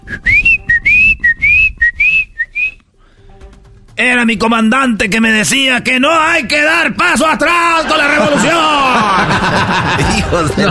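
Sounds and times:
person whistling an imitation of a little bird: 0.0s - 2.8s
speech: 4.0s - 10.6s
laughter: 7.6s - 10.6s.

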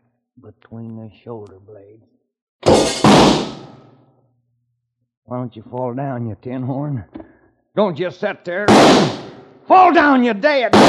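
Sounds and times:
speech: 0.4s - 2.7s, 5.3s - 10.8s
gunshot: 2.6s - 3.8s, 8.7s - 9.5s.

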